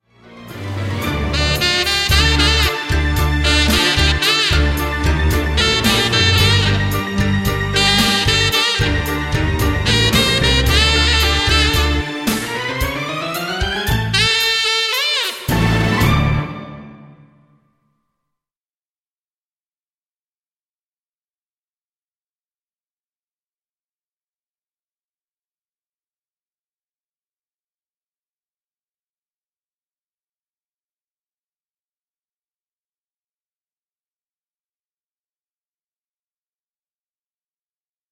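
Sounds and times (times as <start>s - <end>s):
opening music playback: 0.0s - 17.6s.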